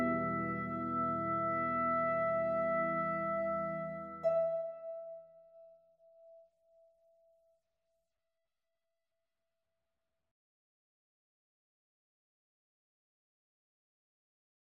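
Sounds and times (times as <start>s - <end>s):
trumpet: 0.0s - 5.3s
harp: 0.0s - 6.3s.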